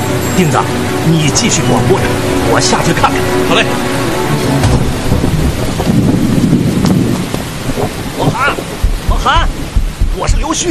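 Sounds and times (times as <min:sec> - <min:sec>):
heavy rain: 0:00.0 - 0:10.7
speech: 0:00.4 - 0:04.8, 0:10.2 - 0:10.7
thunder: 0:04.6 - 0:10.2.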